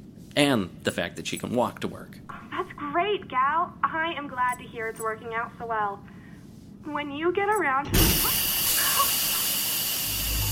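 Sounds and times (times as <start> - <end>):
speech: 0.4 - 2.4, 3.0 - 6.1, 6.8 - 8.4
plumbing hissing and screaming as air pockets are pumped out: 7.9 - 10.5.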